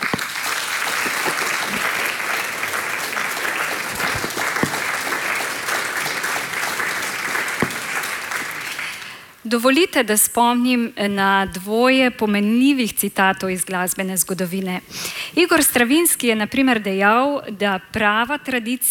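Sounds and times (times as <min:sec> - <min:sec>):
audience clapping: 0:00.0 - 0:09.2
speech: 0:09.5 - 0:18.9.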